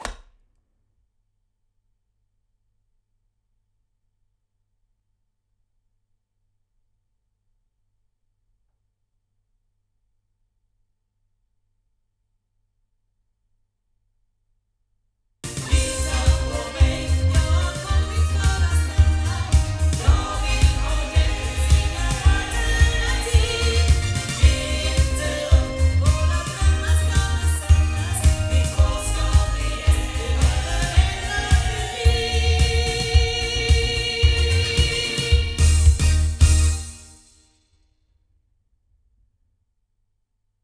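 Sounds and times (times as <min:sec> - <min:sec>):
loudspeaker playback: 0:15.5 - 0:36.9.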